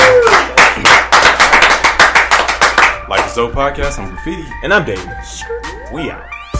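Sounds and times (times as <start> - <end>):
small group clapping for a podcast guest: 0.0 - 3.4
speech: 3.4 - 6.4.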